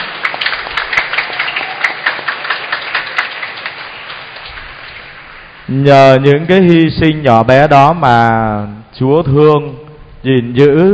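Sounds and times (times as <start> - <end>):
loud audience applause: 0.0 - 5.8
speech: 5.7 - 10.9.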